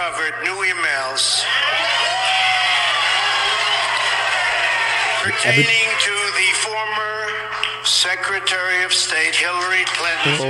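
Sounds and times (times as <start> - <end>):
speech: 0.0 - 1.7, 5.2 - 7.1, 7.8 - 10.4
audience cheering and whooping: 1.5 - 5.3.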